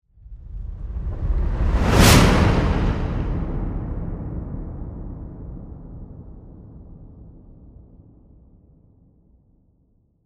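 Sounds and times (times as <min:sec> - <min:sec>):
whoosh: 0:00.2 - 0:05.2.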